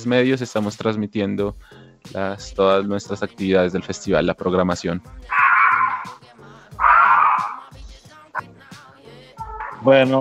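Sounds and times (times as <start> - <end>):
speech: 0.0 - 5.4, 9.8 - 10.1
dog barking: 5.3 - 6.2, 6.8 - 7.7.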